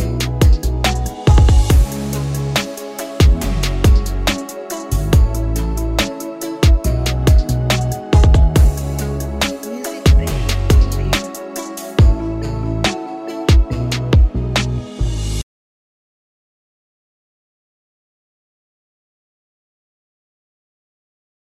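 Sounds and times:
nostalgic modern urban trap beat: 0:00.0 - 0:15.1.

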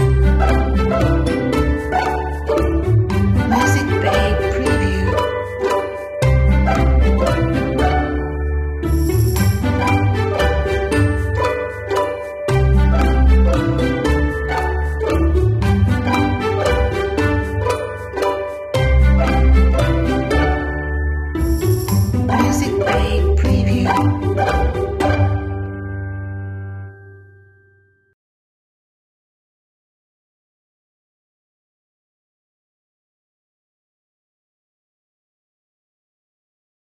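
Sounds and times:
commercial background music: 0:00.0 - 0:27.8.

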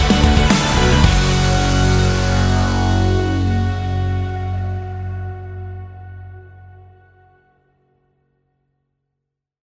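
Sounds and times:
energetic rock trailer music for action sports: 0:00.0 - 0:05.4.

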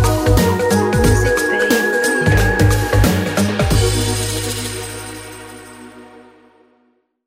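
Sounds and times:
logo sound: 0:00.2 - 0:05.9.

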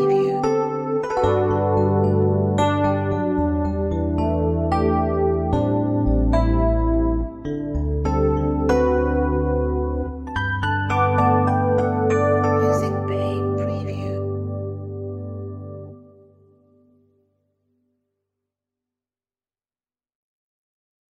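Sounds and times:
piano logo jingle: 0:00.0 - 0:16.9.

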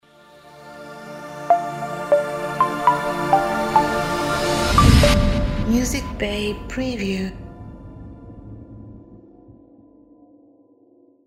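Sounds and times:
plucked logo jingle: 0:01.5 - 0:06.2.

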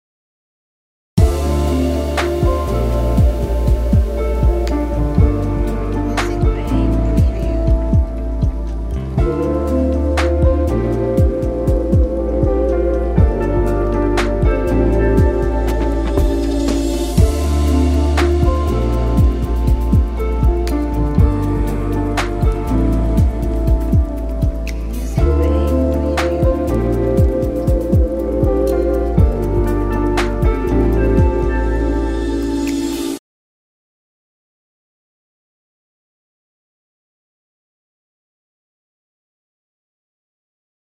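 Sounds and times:
chill rainy lo-fi hip hop music: 0:01.2 - 0:33.2.

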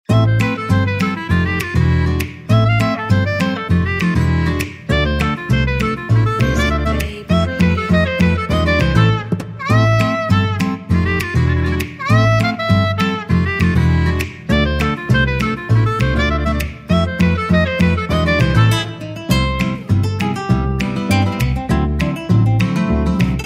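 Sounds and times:
retro gypsy jazz: 0:00.1 - 0:23.4.

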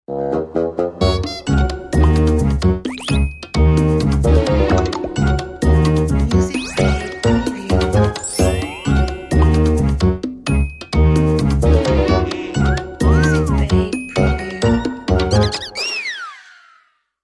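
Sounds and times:
funny comedy music: 0:00.1 - 0:16.9.

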